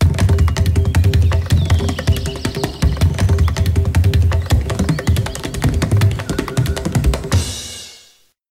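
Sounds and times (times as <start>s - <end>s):
healing wind: 0.0s - 7.2s.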